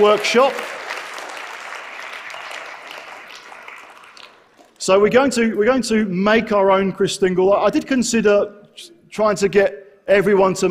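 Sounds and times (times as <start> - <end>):
speech: 0.0 - 0.7, 4.8 - 10.6
crowd applause: 0.0 - 4.8.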